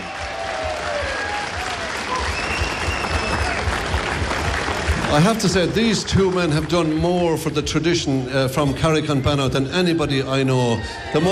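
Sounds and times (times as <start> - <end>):
audience applause welcoming two mouth organ players onto the stage: 0.0 - 8.3
speech: 5.1 - 11.3.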